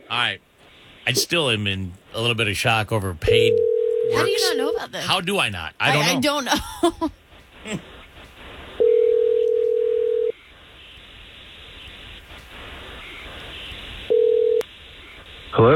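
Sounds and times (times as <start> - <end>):
low hiss: 0.0 - 15.7
speech: 0.1 - 7.9
telephone ring-back tone: 3.3 - 4.8, 8.8 - 10.3, 14.1 - 14.6
laughter: 4.2 - 7.1.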